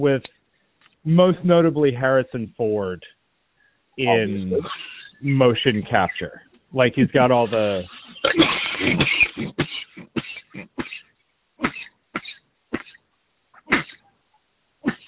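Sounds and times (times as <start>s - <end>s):
speech: 0.0s - 0.4s, 1.0s - 3.2s, 4.0s - 10.7s
person coughing in a hard coughing fit: 8.2s - 11.0s, 11.6s - 13.0s.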